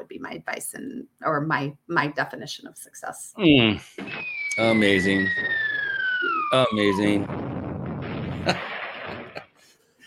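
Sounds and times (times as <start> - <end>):
speech: 0.1 - 5.7, 6.5 - 7.5, 8.4 - 8.7
bomb explosion sound effect: 4.0 - 9.6
sharp cracks: 4.0 - 9.6.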